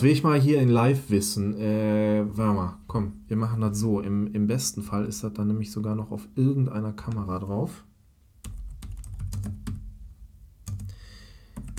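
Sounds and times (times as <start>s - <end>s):
speech: 0.0s - 7.9s
typing on a computer keyboard: 8.4s - 9.8s, 10.6s - 11.7s.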